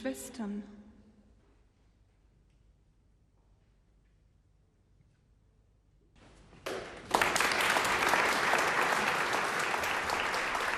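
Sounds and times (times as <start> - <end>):
concert audience applause: 6.6 - 10.7.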